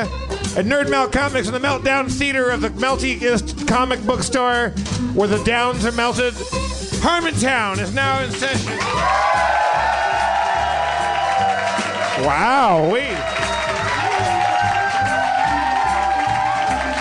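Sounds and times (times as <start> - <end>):
speech: 0.0 - 9.6, 12.2 - 13.5
live audience clapping and cheering: 8.0 - 16.9
wavering whooping shout: 8.8 - 16.9.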